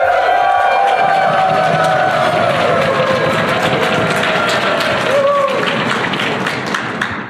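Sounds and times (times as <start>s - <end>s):
whoops: 0.0s - 5.8s
conference audience at Prairie DevCon in Calgary cheering and clapping: 0.0s - 7.2s.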